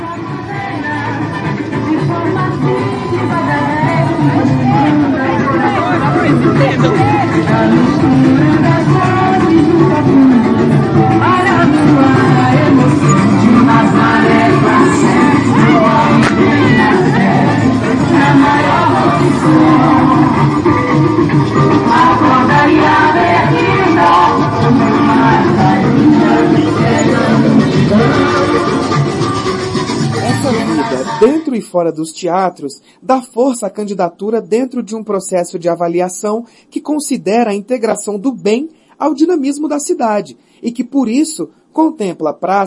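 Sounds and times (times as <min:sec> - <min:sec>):
festival crowd hubbub in city streets: 0:00.0 - 0:31.5
speech: 0:06.4 - 0:09.2, 0:31.8 - 0:42.6.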